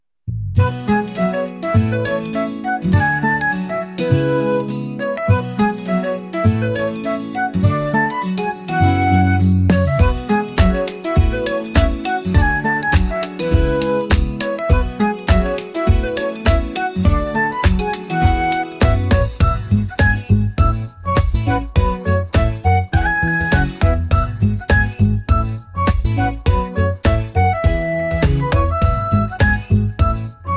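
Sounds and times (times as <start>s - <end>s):
bright morning music: 0.6s - 30.5s.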